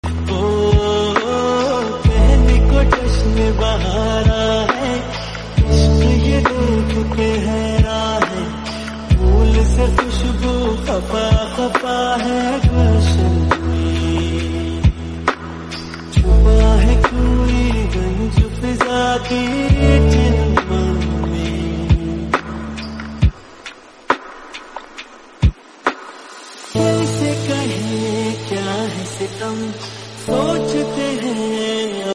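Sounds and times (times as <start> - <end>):
lofi remix music: 0.0 - 32.1.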